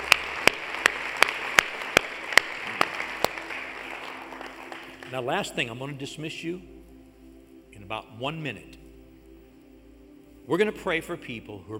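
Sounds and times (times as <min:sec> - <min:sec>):
church congregation clapping in unison: 0:00.0 - 0:06.0
speech: 0:05.1 - 0:06.7, 0:07.8 - 0:08.8, 0:10.5 - 0:11.7.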